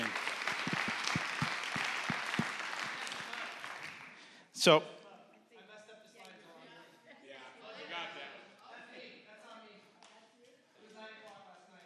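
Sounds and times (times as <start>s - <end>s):
audience applause: 0.0s - 4.3s
speech: 4.6s - 5.0s.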